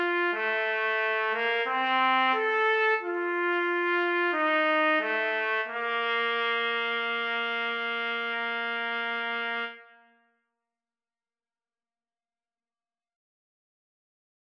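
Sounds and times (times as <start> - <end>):
yodel trumpet duet: 0.0 - 10.2.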